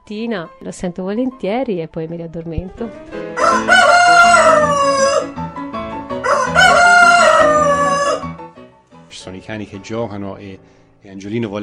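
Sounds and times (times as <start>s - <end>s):
speech: 0.1s - 3.9s, 9.2s - 11.6s
rooster crowing: 3.4s - 5.4s, 6.2s - 8.4s.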